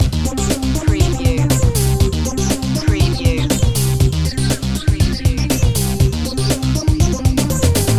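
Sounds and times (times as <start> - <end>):
retro electro music loop: 0.0 - 7.9.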